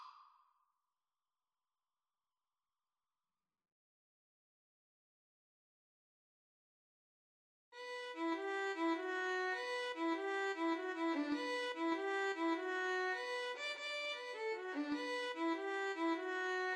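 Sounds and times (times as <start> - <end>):
violin and cello duet: 7.8 - 16.7.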